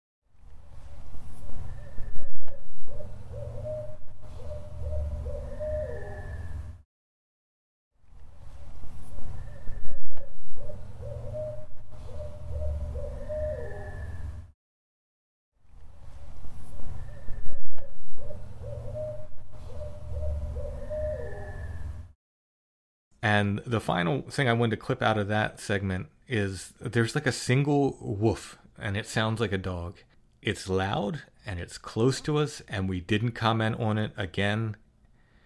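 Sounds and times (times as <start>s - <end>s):
owl hooting: 1.5s - 6.8s, 9.3s - 14.4s, 16.9s - 22.0s
speech: 23.2s - 34.8s.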